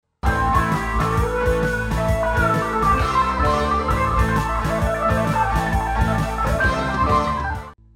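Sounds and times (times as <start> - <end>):
car boogie music: 0.2 - 7.8.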